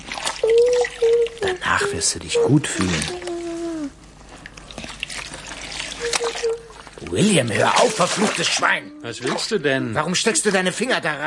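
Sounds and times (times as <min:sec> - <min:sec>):
water trickling and splashing in a bathtub: 0:00.0 - 0:10.8
speech: 0:01.6 - 0:03.3, 0:07.1 - 0:11.2
brief high-pitched squeak: 0:06.0 - 0:06.7.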